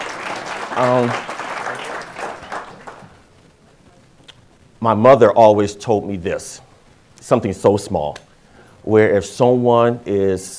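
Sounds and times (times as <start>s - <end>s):
audience applause: 0.0s - 3.2s
speech: 0.8s - 1.3s, 4.8s - 8.2s, 8.8s - 10.5s.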